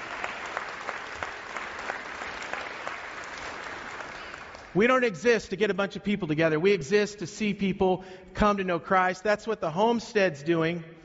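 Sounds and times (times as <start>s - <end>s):
audience clapping: 0.0s - 4.8s
speech: 4.7s - 11.0s.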